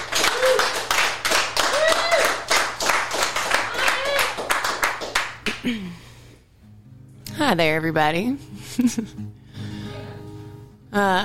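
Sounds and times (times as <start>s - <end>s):
audience applause: 0.0s - 5.7s
speech: 5.6s - 6.1s, 7.4s - 9.4s, 10.9s - 11.2s
laughter: 8.6s - 9.2s.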